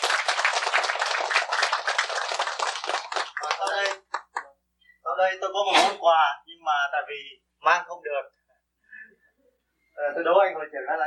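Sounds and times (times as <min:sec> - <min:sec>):
audience applause: 0:00.0 - 0:04.4
speech: 0:05.2 - 0:08.4, 0:10.0 - 0:11.0.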